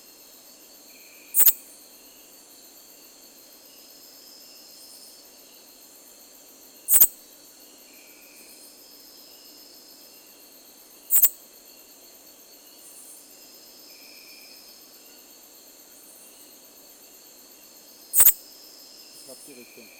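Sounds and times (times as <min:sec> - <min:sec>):
background hiss: 0:00.0 - 0:19.9
Katydid Promeca borneana chirping: 0:00.9 - 0:02.3, 0:06.8 - 0:07.2, 0:11.0 - 0:11.4, 0:18.0 - 0:19.9.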